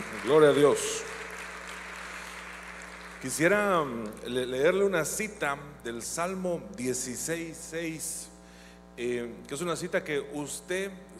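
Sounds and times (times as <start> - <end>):
audience applause: 0.0 - 3.6
low electrical hum: 0.0 - 11.1
speech: 0.2 - 1.1, 3.2 - 8.3, 9.0 - 11.1.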